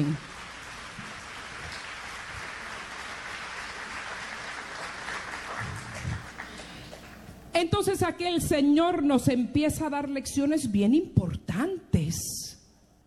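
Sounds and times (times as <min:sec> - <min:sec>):
audience applause: 0:00.0 - 0:07.2
speech: 0:07.6 - 0:12.3.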